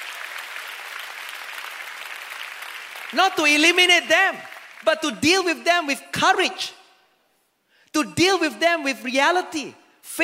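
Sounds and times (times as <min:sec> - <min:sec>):
large crowd applauding: 0:00.0 - 0:05.0
speech: 0:03.1 - 0:06.8, 0:07.9 - 0:10.2.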